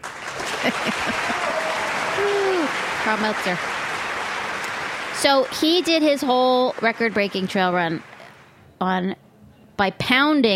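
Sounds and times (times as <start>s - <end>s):
audience applause: 0.0s - 8.6s
laughter: 0.3s - 3.6s
speech: 0.6s - 1.5s, 2.2s - 3.8s, 5.2s - 8.1s, 8.8s - 9.2s, 9.8s - 10.5s.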